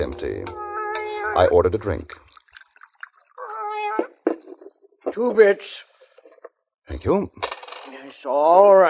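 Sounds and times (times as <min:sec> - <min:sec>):
cat meowing on a bar: 0:00.0 - 0:01.6, 0:03.4 - 0:04.2
speech: 0:00.0 - 0:02.2, 0:05.1 - 0:05.9, 0:06.9 - 0:08.8.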